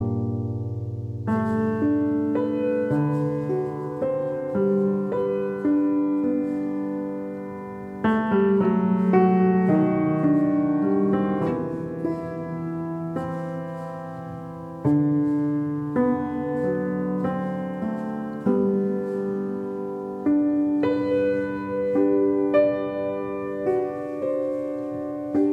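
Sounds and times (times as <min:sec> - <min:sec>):
solo piano: 0:00.0 - 0:25.5.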